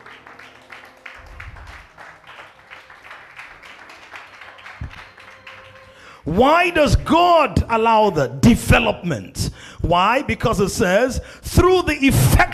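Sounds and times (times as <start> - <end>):
audience clapping: 0.0 - 6.4
speech: 6.3 - 12.5.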